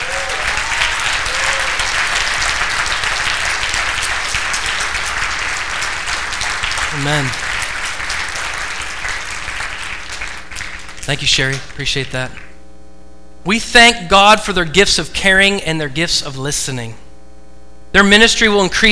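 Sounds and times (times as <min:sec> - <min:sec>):
church audience applause: 0:00.0 - 0:12.5
speech: 0:07.0 - 0:07.5, 0:11.1 - 0:12.4, 0:13.4 - 0:17.0, 0:18.0 - 0:18.9.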